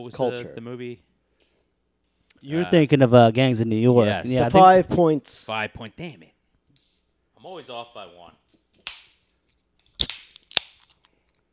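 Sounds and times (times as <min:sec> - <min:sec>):
speech: 0:00.0 - 0:01.1, 0:02.4 - 0:06.3, 0:07.4 - 0:08.4
beer cans being cracked open with fizzing hiss: 0:08.5 - 0:11.4.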